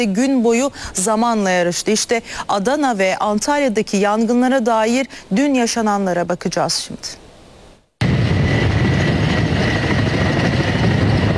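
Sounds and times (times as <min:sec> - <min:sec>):
speech: 0:00.0 - 0:07.2
helicopters fighting wildfires in Adana and Antalya: 0:08.0 - 0:11.3.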